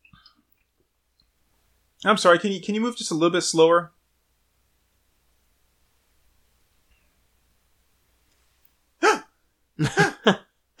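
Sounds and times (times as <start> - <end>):
speech: 2.0 - 4.0
woman hyperventilating with panicked gasping breaths: 9.0 - 9.2
laughter: 9.8 - 10.7.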